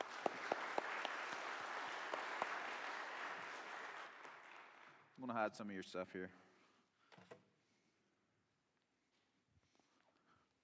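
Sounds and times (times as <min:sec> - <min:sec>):
audience applause: 0:00.0 - 0:05.1
speech: 0:05.2 - 0:06.4.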